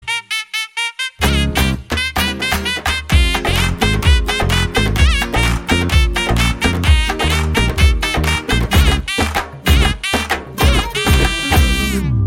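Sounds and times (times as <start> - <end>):
drum beats: 1.2 - 12.2.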